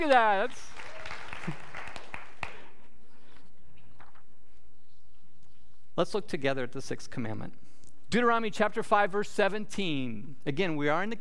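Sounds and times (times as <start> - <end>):
speech: 0.0 - 0.8, 6.0 - 11.2
audience clapping: 0.0 - 2.9.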